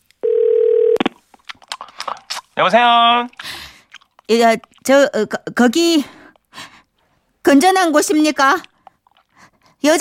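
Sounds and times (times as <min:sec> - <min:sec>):
telephone dial tone: 0:00.2 - 0:01.1
speech: 0:02.6 - 0:03.4, 0:04.3 - 0:06.2, 0:07.5 - 0:08.7.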